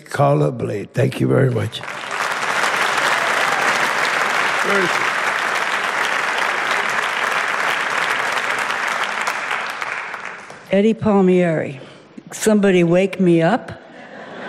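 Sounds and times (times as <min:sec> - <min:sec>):
speech: 0:00.1 - 0:02.0, 0:04.7 - 0:05.1, 0:10.7 - 0:13.8
audience applause: 0:01.3 - 0:10.7
laughter: 0:13.8 - 0:14.4.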